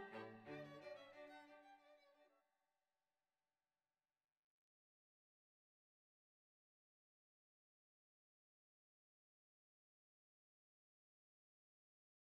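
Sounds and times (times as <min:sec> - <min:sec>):
string quartet playing a Baroque concerto: 0:00.0 - 0:01.6.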